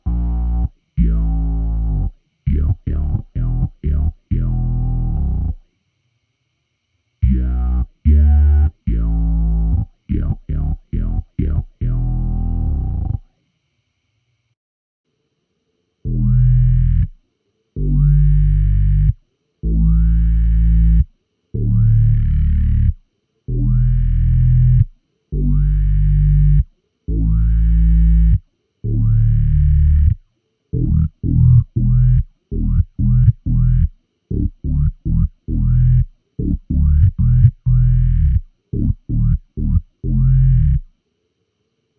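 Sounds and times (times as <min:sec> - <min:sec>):
bass vocal: 0:00.0 - 0:05.6, 0:07.2 - 0:13.2, 0:16.0 - 0:17.1, 0:17.8 - 0:30.2, 0:30.8 - 0:40.8.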